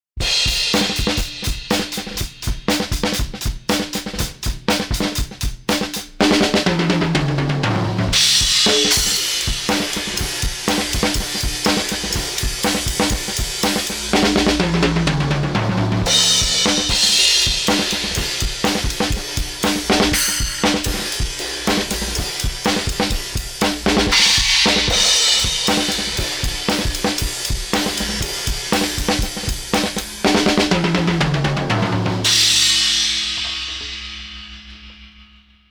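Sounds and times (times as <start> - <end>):
drums: 0.1 - 35.6.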